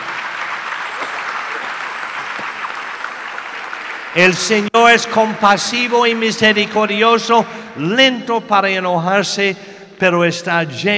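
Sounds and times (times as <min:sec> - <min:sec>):
audience applauding: 0:00.0 - 0:06.8
speech: 0:04.2 - 0:10.9.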